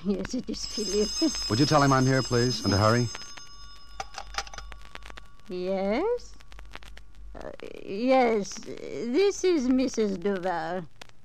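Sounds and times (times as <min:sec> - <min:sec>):
speech: 0:00.0 - 0:03.3, 0:05.5 - 0:06.4, 0:07.4 - 0:11.0
telephone ringing: 0:00.3 - 0:05.3.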